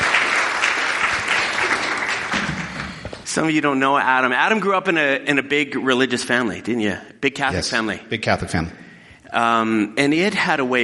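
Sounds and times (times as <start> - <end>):
audience applause welcoming a speaker: 0.0 - 3.3
speech: 3.4 - 10.8.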